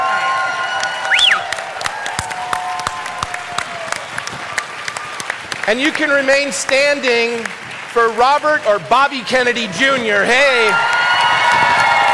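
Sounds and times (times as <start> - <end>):
whistles and cheers: 0.0 - 5.4, 10.5 - 12.1
standing ovation applause from a large crowd: 0.0 - 12.1
speech: 5.7 - 11.0.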